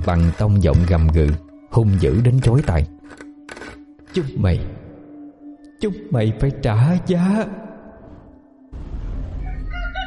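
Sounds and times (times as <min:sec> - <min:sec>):
speech: 0:00.0 - 0:03.2, 0:04.2 - 0:04.8, 0:05.8 - 0:07.7
rooster crowing: 0:09.4 - 0:10.0.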